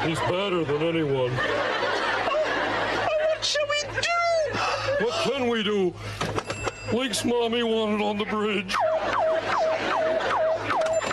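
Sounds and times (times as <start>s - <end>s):
speech: 0.0s - 2.0s, 3.4s - 10.0s
laughter: 0.0s - 5.6s, 8.2s - 11.1s
warning buzzer alarm: 8.5s - 11.1s.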